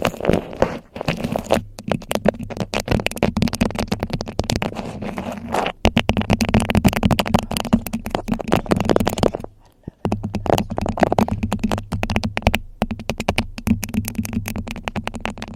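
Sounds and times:
crinkling of beeswax wrap: 0.0 - 15.5
rapid clicking: 0.0 - 15.5
scratching: 0.0 - 15.5
tapping: 0.0 - 15.5.

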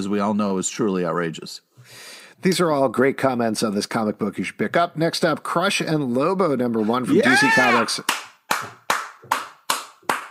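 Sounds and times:
speech: 0.0 - 8.8
sharp hand claps: 7.9 - 10.2.

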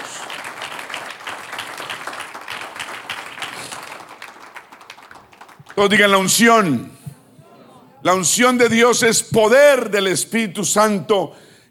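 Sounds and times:
audience applause: 0.0 - 6.0
speech: 5.8 - 7.0, 8.0 - 11.5.

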